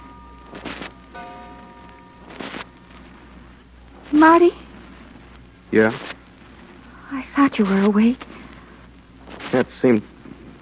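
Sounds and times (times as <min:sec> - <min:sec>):
clock striking: 0:00.0 - 0:02.6
speech: 0:04.2 - 0:04.6, 0:05.7 - 0:06.2, 0:07.1 - 0:08.3, 0:09.5 - 0:10.1.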